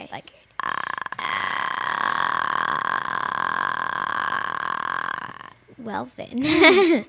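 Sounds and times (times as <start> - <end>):
speech: 0.1 - 0.5, 5.8 - 7.0
throaty vocal warm-up exercise sound: 0.6 - 5.7
laughter: 6.4 - 7.0.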